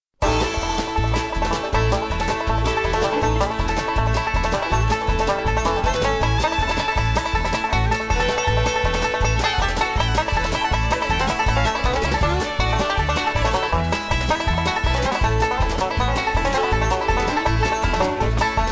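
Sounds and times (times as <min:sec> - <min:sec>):
fiddle: 0:00.2 - 0:18.6.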